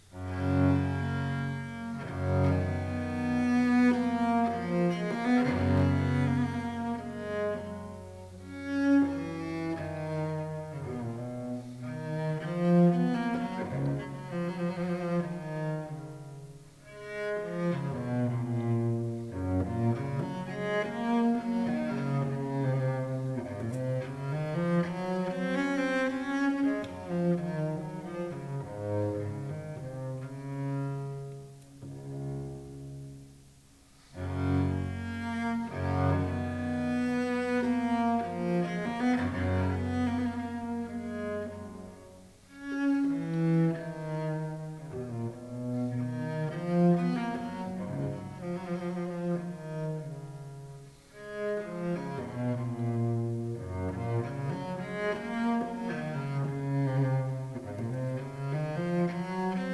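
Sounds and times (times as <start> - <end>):
sarabande for solo cello: 0.0 - 59.7.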